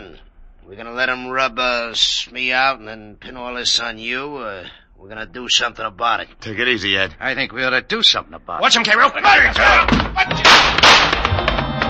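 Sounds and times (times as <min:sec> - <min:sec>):
speech: 0:00.7 - 0:10.8
handgun shots in a radio drama shootout: 0:10.4 - 0:11.4.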